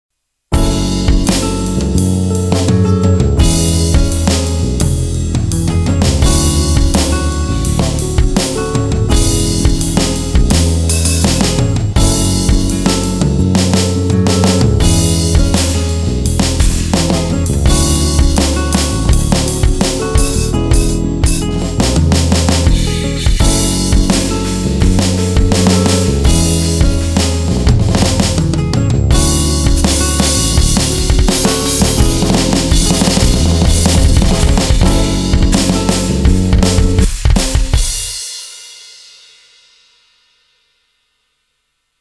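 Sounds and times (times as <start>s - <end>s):
ballad: 0.6s - 37.6s.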